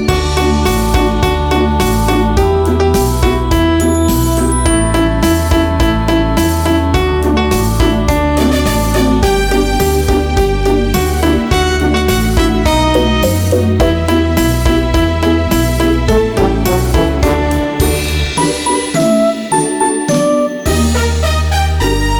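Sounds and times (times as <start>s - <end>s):
karaoke singing: 0.1s - 22.1s.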